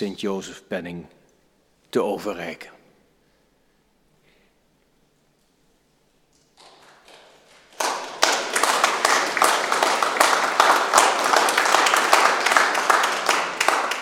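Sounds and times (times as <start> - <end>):
speech: 0.0 - 1.2, 1.9 - 2.8
audience applause: 6.6 - 13.9.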